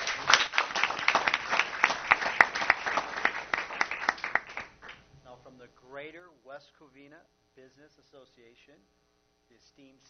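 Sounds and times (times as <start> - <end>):
audience applause at a business association event: 0.0 - 5.0
speech: 6.6 - 10.0.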